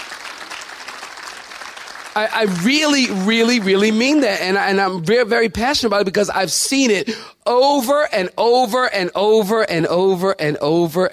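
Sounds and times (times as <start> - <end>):
audience clapping hands: 0.0 - 4.4
speech: 2.2 - 11.1.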